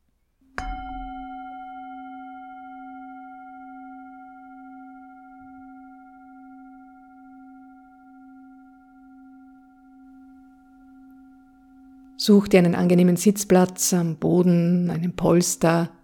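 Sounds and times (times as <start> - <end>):
singing bowl struck and ringing: 0.6 - 13.2
speech: 12.2 - 16.0.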